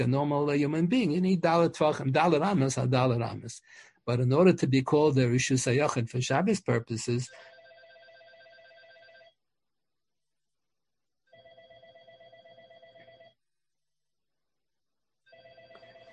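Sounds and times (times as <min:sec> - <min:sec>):
speech: 0:00.0 - 0:07.5
electronic doorbell ringing: 0:07.4 - 0:09.4, 0:11.3 - 0:13.4, 0:15.3 - 0:16.1.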